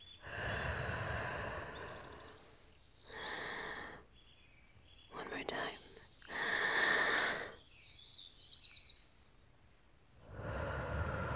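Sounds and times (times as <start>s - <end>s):
slow deep breathing in and out: 0.0s - 4.1s, 6.2s - 7.6s, 10.2s - 11.3s.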